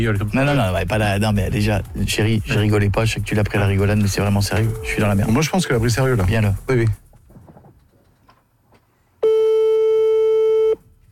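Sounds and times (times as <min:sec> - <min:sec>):
speech: 0:00.0 - 0:07.0
telephone busy tone: 0:09.2 - 0:10.8.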